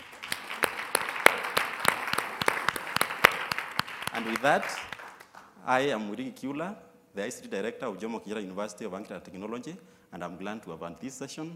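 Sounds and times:
audience clapping: 0.0s - 5.5s
speech: 4.2s - 4.9s, 5.6s - 11.5s.

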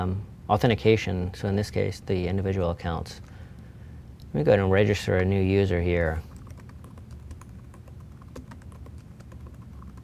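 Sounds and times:
speech: 0.0s - 3.3s, 4.3s - 6.3s
password typed on a computer keyboard: 6.3s - 10.0s.

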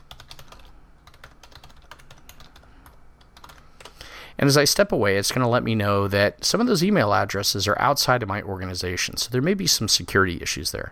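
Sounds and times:
typing on a computer keyboard: 0.0s - 4.0s
speech: 4.4s - 10.8s.

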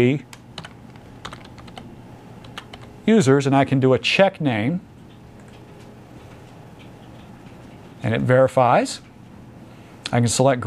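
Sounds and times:
speech: 0.0s - 0.3s, 3.1s - 4.9s, 8.0s - 9.1s, 10.1s - 10.6s
typing a domain name on a computer keyboard: 0.6s - 2.9s.

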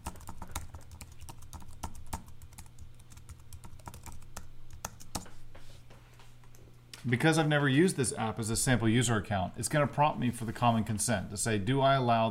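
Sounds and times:
login credentials typed on a computer keyboard: 0.0s - 5.3s
speech: 7.0s - 12.2s.

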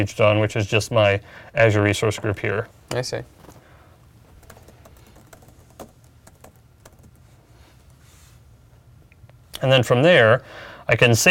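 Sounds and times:
speech: 0.0s - 3.6s, 9.6s - 11.2s
password typed on a computer keyboard: 4.3s - 8.0s.

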